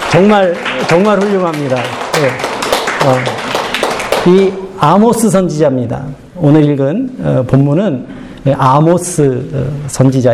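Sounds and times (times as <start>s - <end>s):
audience applause: 0.0s - 4.5s
speech: 0.1s - 3.4s, 4.2s - 10.3s.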